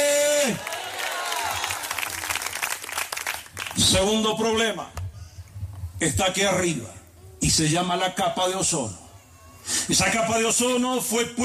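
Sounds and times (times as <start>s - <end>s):
speech: 0.5s - 0.7s, 3.9s - 5.0s, 6.0s - 9.0s, 9.6s - 11.4s
audience applause: 0.5s - 3.8s.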